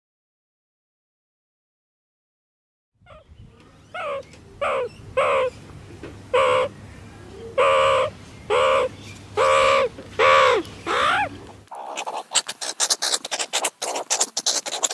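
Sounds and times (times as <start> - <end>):
meerkat giving quick harsh barks: 4.0 - 5.5, 6.3 - 6.7, 7.6 - 14.9.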